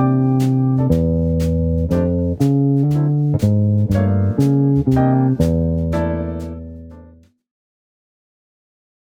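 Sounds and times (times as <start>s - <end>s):
walking bass guitar: 0.0s - 7.3s.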